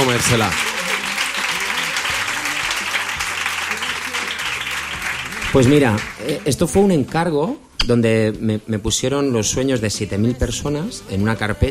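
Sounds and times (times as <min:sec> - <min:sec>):
audience applauding: 0:00.0 - 0:06.8
speech: 0:00.1 - 0:00.7, 0:05.5 - 0:11.6.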